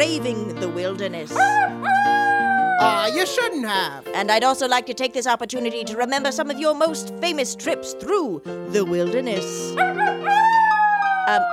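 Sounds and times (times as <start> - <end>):
speech: 0.0 - 10.6, 11.3 - 11.5
wolf howling: 1.4 - 3.4, 9.8 - 11.5.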